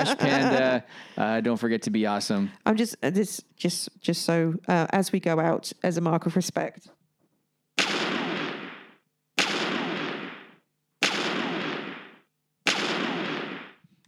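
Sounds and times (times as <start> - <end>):
laughter: 0.0 - 1.0
speech: 0.0 - 7.0
gun salute sound effect booming shots: 7.8 - 13.8.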